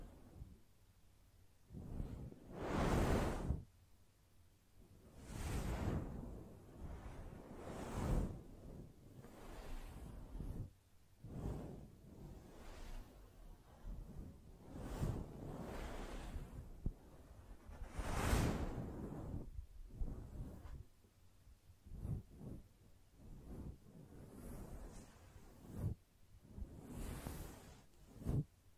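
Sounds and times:
gentle brushing strokes: 0.0s - 0.8s, 1.6s - 3.8s, 4.8s - 28.7s.

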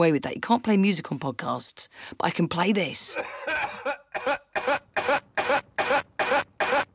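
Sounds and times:
speech: 0.0s - 4.4s
harsh hacking coughs: 3.1s - 6.9s.

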